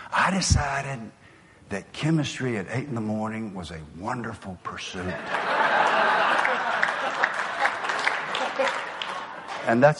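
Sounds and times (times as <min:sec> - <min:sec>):
speech: 0:00.3 - 0:05.5, 0:09.6 - 0:09.9
audience laughter: 0:05.1 - 0:09.6
audience applause: 0:05.3 - 0:09.9.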